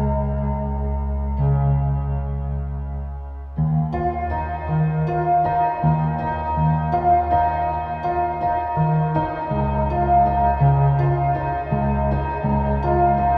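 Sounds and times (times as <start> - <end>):
upright piano sample: 0.0 - 13.3.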